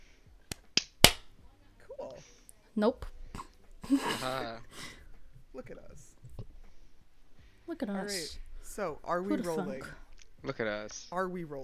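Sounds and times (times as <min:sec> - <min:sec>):
hand clap to sync recording: 0:00.5 - 0:01.3
speech: 0:02.2 - 0:03.2, 0:03.9 - 0:06.1, 0:07.7 - 0:11.6.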